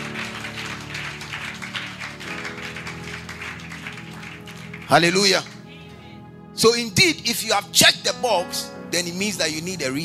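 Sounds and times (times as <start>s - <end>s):
audience clapping hands: 0.0s - 5.9s
speech: 4.9s - 5.5s, 6.6s - 10.0s.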